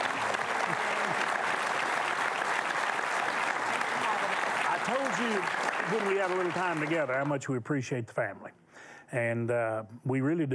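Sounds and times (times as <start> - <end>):
studio audience applause welcoming guests onto the set: 0.0 - 7.6
speech: 5.1 - 8.5, 9.1 - 10.5.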